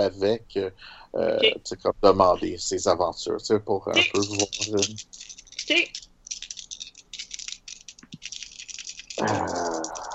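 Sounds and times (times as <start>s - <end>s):
speech: 0.0s - 6.1s, 9.2s - 10.0s
dice being shaken: 4.0s - 10.1s.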